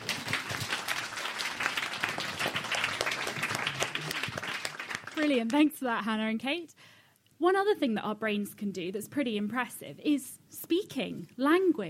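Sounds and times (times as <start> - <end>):
audience applause: 0.0 - 5.3
speech: 5.2 - 6.8, 7.4 - 11.8.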